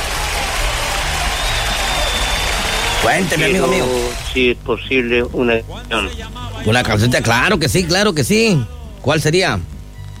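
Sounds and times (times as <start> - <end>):
applause: 0.0 - 4.4
speech: 3.0 - 9.7.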